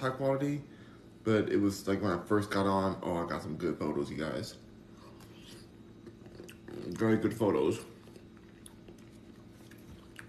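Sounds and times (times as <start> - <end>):
speech: 0.0 - 4.6, 6.7 - 7.9
chewing papaya: 5.0 - 10.2.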